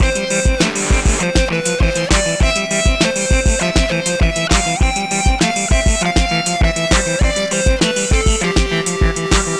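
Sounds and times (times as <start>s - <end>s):
hymn loop: 0.0s - 9.5s.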